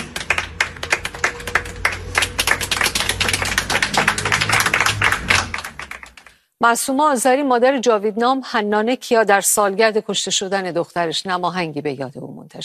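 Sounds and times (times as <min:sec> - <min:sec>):
audience clapping at a commemoration for people killed in Iran's protests: 0:00.0 - 0:06.4
speech: 0:06.6 - 0:12.6.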